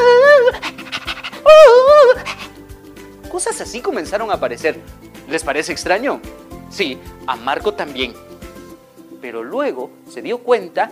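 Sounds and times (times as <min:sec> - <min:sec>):
person imitating a siren: 0:00.0 - 0:02.5
person imitating dog panting: 0:00.4 - 0:02.6
speech: 0:03.9 - 0:08.3, 0:09.2 - 0:10.9.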